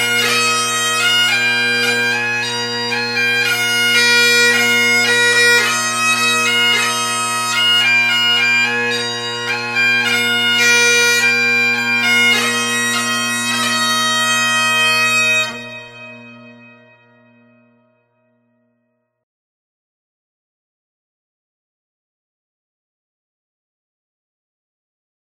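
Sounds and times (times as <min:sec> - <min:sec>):
classical bagpipes: 0:00.0 - 0:18.0.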